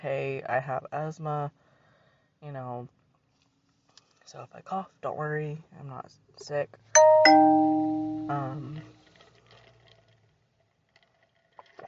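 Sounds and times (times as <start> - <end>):
speech: 0.0 - 1.7, 2.4 - 3.0, 4.3 - 9.0
phone notification chime: 7.0 - 8.8.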